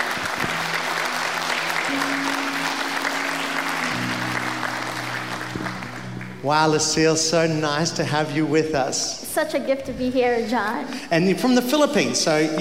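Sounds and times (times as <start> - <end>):
audience applause welcoming a guest from the Philippines: 0.0 - 8.1
speech: 6.4 - 12.6.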